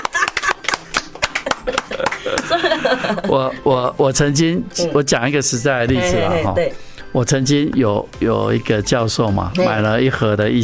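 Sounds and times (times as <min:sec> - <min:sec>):
laughter: 0:00.0 - 0:00.8, 0:01.4 - 0:03.6
hand clapping: 0:00.0 - 0:02.9
speech: 0:01.6 - 0:10.6.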